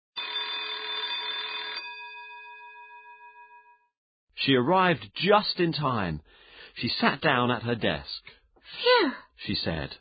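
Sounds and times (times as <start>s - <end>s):
school bell ringing: 0.2s - 3.8s
speech: 4.4s - 9.9s.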